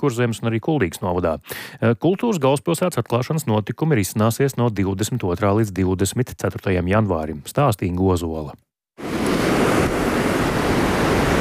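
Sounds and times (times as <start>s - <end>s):
speech: 0.0s - 8.7s
strong wind gusts outdoors in Liepāja: 9.0s - 11.3s.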